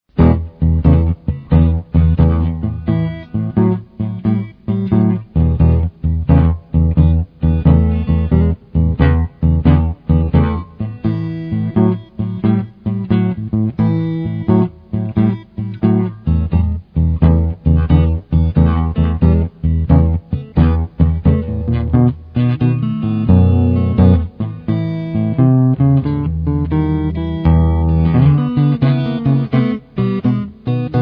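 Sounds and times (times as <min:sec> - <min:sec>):
blues guitar: 0:00.1 - 0:31.0.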